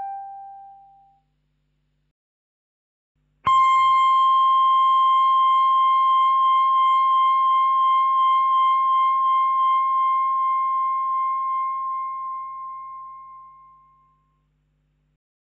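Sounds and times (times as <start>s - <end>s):
electric guitar: 3.5s - 13.3s.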